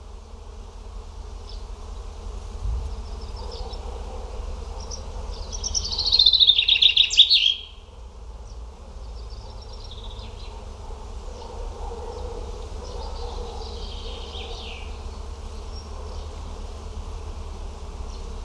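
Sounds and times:
bird song of quick repeated high chirping notes: 2.9s - 7.9s, 12.1s - 16.3s.

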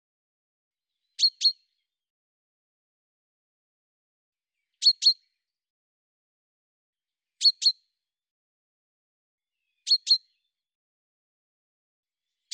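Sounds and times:
bird chirping: 0.9s - 2.0s, 4.5s - 5.6s, 7.4s - 8.0s, 9.5s - 10.6s, 12.2s - 12.5s.

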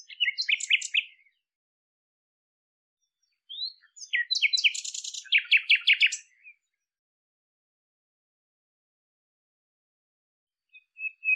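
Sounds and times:
bird chirping song: 0.0s - 1.6s, 3.0s - 7.0s, 10.6s - 11.3s.

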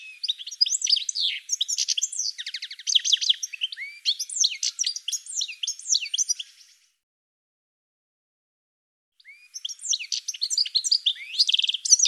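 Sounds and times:
bird twittering: 0.0s - 6.8s, 9.2s - 12.0s.

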